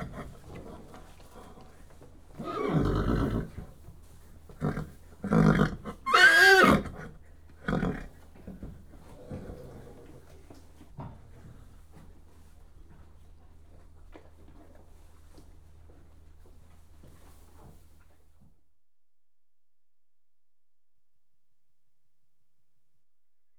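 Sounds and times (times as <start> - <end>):
horses whickering in stables: 2.4 - 3.5, 4.5 - 10.2.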